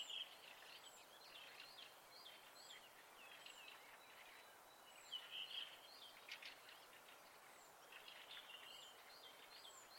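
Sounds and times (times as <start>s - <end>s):
birds singing at night in spring: 0.0s - 9.9s.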